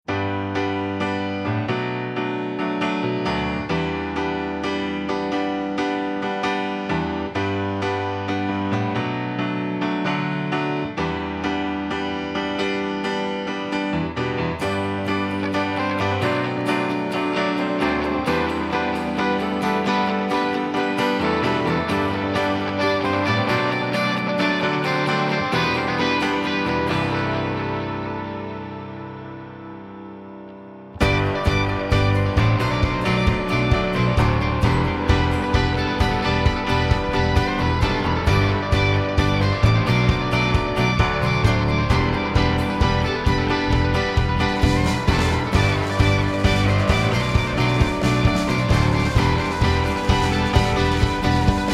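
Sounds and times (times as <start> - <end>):
instrumental music: 0.1 - 51.7.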